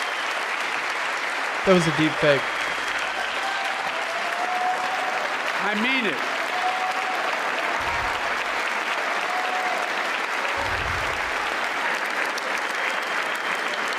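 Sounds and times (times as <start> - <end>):
crowd cheering and applauding in a played video: 0.0 - 13.9
speech: 1.6 - 2.8, 5.6 - 6.4.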